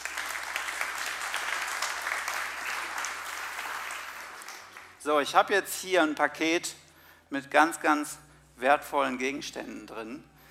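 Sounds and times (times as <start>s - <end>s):
audience applause: 0.0s - 5.0s
speech: 5.0s - 10.3s.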